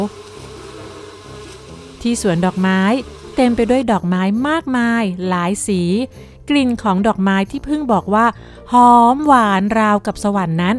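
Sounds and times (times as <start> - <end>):
speech: 0.0 - 0.3, 2.0 - 10.7
bee buzzing in flight: 0.0 - 3.9.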